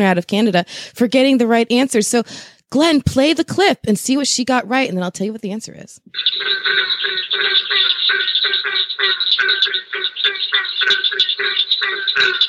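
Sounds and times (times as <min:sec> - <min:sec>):
speech: 0:00.0 - 0:12.4
barking tree frog calling: 0:06.1 - 0:12.4.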